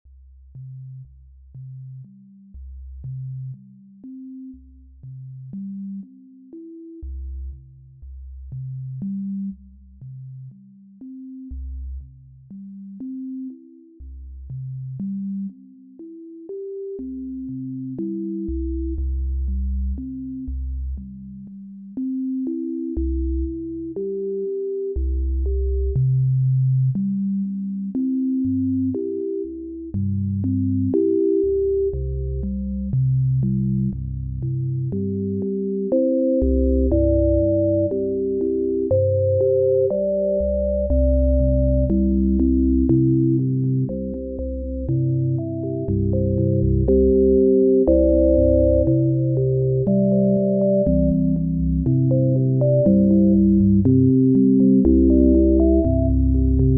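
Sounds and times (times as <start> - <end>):
sine waves: 0.6 - 56.7.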